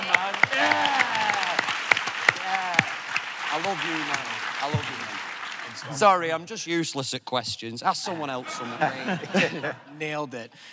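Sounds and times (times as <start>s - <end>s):
audience applause: 0.0s - 6.2s
speech: 3.6s - 10.7s
laughter: 8.0s - 10.0s.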